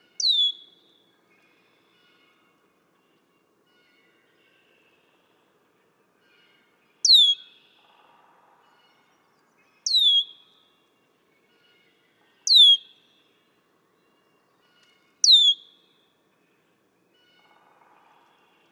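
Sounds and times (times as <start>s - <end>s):
red-winged blackbird downward-slurred whistles: 0.2s - 0.8s, 9.9s - 10.4s, 15.2s - 15.8s.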